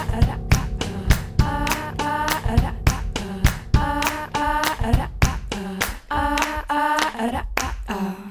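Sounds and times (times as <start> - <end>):
drums: 0.0 - 6.7
choir singing in a song: 0.0 - 6.9
handclaps: 5.8 - 7.9.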